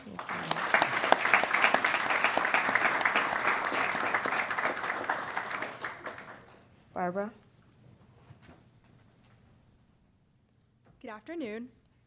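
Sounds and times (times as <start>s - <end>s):
audience applause for panelists: 0.0s - 6.6s
speech: 7.1s - 7.4s, 11.1s - 12.0s.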